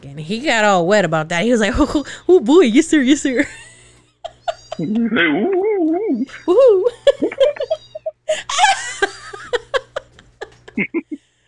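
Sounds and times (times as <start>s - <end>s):
speech: 0.0s - 3.7s, 4.8s - 7.0s, 10.8s - 11.0s
laughter: 3.4s - 11.2s
cat meows and mews in a Justice League video game: 7.5s - 8.1s.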